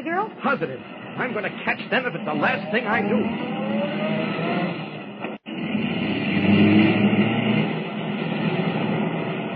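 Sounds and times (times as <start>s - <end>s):
car driving in pursuit: 0.0s - 9.5s
speech: 0.2s - 4.8s.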